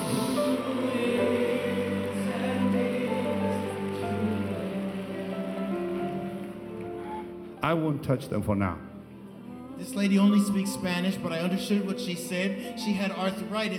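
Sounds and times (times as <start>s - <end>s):
audience applause: 0.0s - 7.1s
speech: 7.6s - 8.9s, 9.8s - 13.7s.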